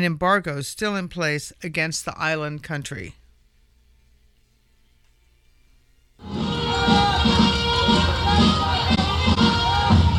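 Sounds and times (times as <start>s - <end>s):
speech: 0.0s - 3.2s
crowd cheering at Cuban flag raising outside the Cuban embassy in Washington, D.C.: 6.2s - 10.1s.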